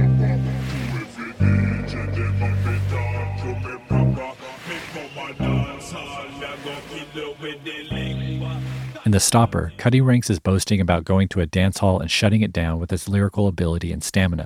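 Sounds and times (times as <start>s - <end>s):
ocean tides: 0.0s - 9.4s
slowed down filtered a cappella vocals: 0.0s - 10.2s
speech: 9.1s - 14.4s.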